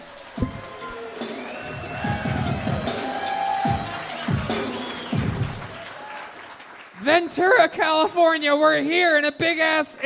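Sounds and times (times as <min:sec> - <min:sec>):
live audience in an airport hangar in Ventura, California, clapping: 0:00.0 - 0:07.7
audience whoops and shouts: 0:00.1 - 0:06.3
speech: 0:07.1 - 0:10.0.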